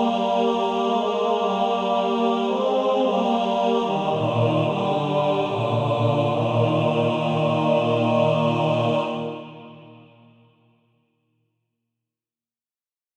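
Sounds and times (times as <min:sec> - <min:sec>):
male choir: 0:00.0 - 0:10.5.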